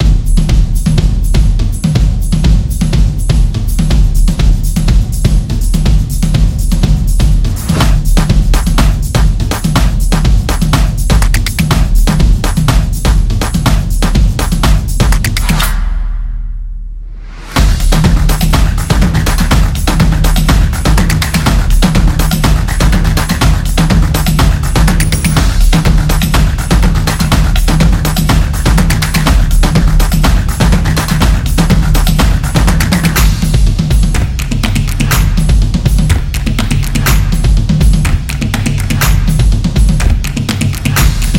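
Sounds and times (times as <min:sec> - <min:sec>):
drum beat: 0:00.0 - 0:16.4, 0:17.2 - 0:41.3.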